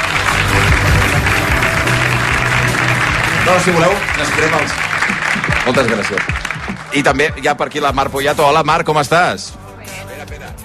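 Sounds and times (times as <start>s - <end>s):
crowd applauding for race winners: 0.0s - 7.6s
speech: 3.5s - 4.9s, 5.6s - 9.6s.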